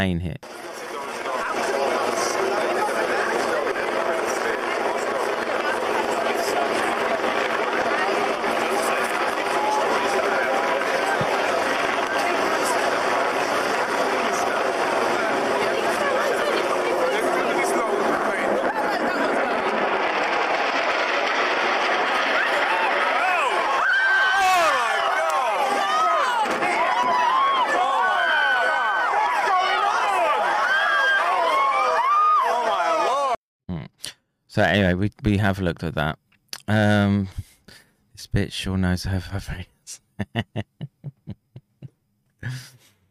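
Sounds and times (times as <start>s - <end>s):
speech: 0.0s - 0.7s, 34.6s - 37.4s, 38.3s - 39.7s
crowd screaming and shouting on the harbour: 1.0s - 33.4s
laughter: 14.0s - 19.4s, 40.0s - 42.8s.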